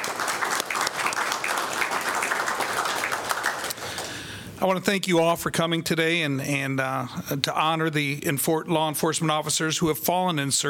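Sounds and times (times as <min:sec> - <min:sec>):
audience applause for chaplains: 0:00.0 - 0:04.4
speech: 0:04.6 - 0:10.6.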